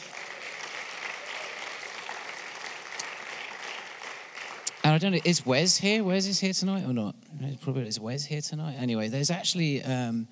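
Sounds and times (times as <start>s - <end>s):
audience applause: 0.0s - 5.8s
speech: 5.0s - 10.3s.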